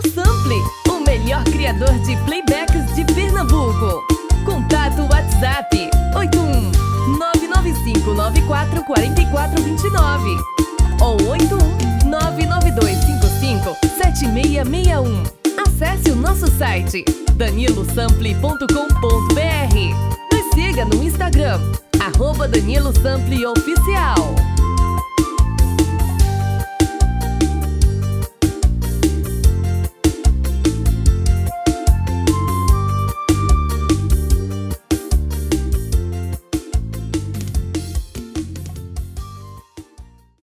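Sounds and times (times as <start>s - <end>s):
brega music: 0.2s - 40.4s.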